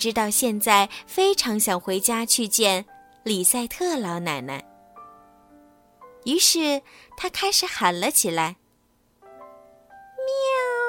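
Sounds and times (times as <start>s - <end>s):
speech: 0.0s - 4.7s, 6.2s - 8.6s
cat meowing: 10.2s - 10.8s.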